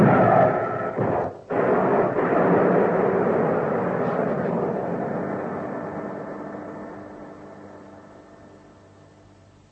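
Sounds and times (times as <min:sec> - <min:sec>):
spacecraft rocket engine roar for descent: 0:00.0 - 0:09.2.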